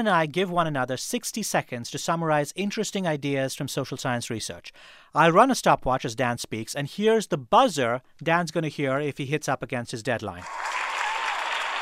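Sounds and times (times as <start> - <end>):
speech: 0.0 - 10.8
applause sound effect: 10.4 - 11.8.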